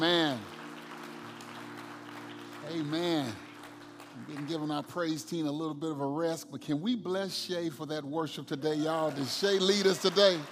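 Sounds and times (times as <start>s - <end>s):
audience clapping hands in praise: 0.0s - 5.7s, 8.7s - 10.5s
speech: 2.7s - 3.4s, 4.3s - 10.5s.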